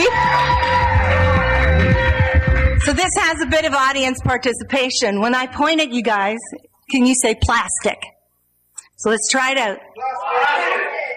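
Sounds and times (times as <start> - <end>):
audience cheering and whooping to welcome a performer: 0.0 - 2.9
speech: 3.3 - 8.1, 9.0 - 10.8.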